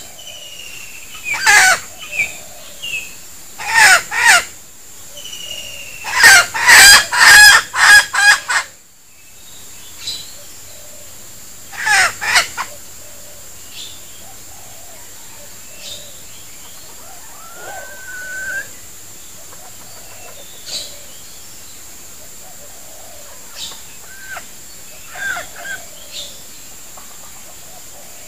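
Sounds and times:
female junglefowl decoy bird squeaking and clucking: 1.2 - 3.0, 3.6 - 4.6, 6.0 - 8.8, 11.7 - 13.4, 14.5 - 18.8, 19.4 - 21.1, 22.4 - 26.4.

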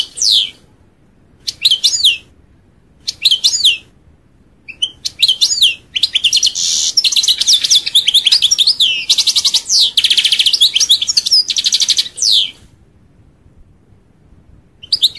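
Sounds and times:
European goldfinch twittering song: 0.0 - 0.6, 1.5 - 2.3, 3.0 - 3.9, 4.7 - 12.6, 14.8 - 15.1.

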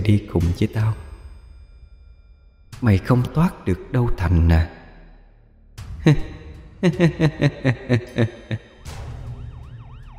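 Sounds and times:
speech: 0.0 - 1.0, 2.7 - 4.8, 6.0 - 8.7
laughter: 6.0 - 8.7
ambulance siren: 8.6 - 10.1.

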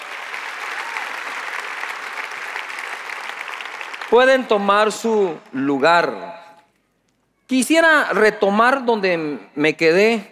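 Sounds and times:
church congregation clapping: 0.0 - 6.0
speech: 4.1 - 6.4, 7.5 - 10.3.

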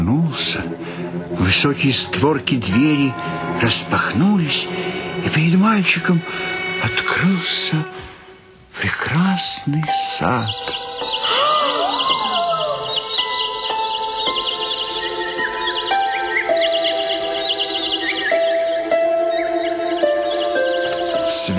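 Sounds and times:
bright-blue birds chirping in a moonlit garden: 0.0 - 21.5
speech: 0.4 - 8.1, 8.8 - 11.5.

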